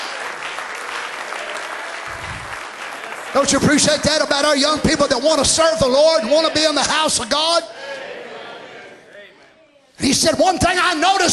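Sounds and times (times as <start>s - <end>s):
audience clapping hands: 0.0s - 5.3s
speech: 3.3s - 7.9s, 10.0s - 11.3s.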